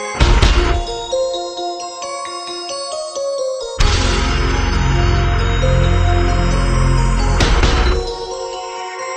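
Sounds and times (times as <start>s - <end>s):
metal music: 0.1s - 1.3s, 3.8s - 9.1s.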